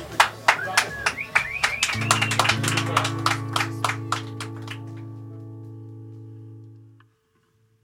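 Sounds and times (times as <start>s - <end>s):
scattered hand claps from a small audience: 0.0s - 5.4s.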